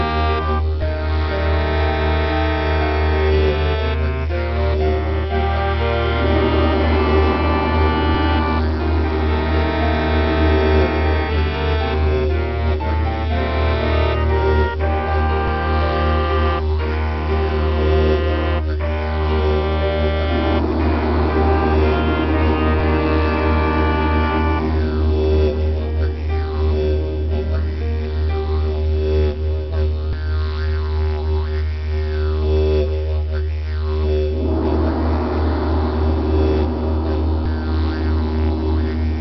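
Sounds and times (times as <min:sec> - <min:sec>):
didgeridoo drone: 0:00.0 - 0:39.2
gong: 0:04.3 - 0:12.9, 0:14.3 - 0:27.7, 0:33.5 - 0:39.2.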